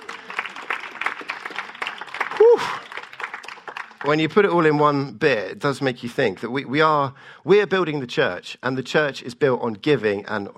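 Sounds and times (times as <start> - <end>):
audience applause: 0.0 - 4.7
speech: 2.4 - 2.9, 4.0 - 10.5.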